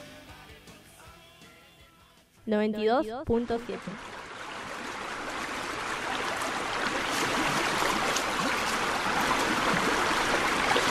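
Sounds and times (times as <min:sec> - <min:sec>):
speech: 0:02.4 - 0:04.1
flowing river water: 0:03.2 - 0:10.8.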